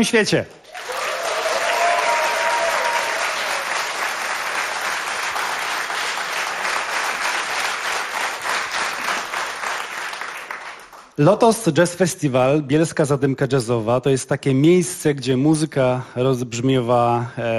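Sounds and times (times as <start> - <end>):
speech: 0.0 - 0.9, 11.2 - 17.5
concert audience applause in a Polish radio studio: 0.6 - 11.1
faint cheers: 0.7 - 4.0.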